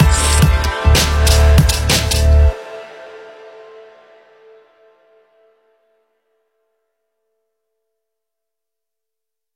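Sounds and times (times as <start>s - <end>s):
drum kit: 0.0s - 2.5s.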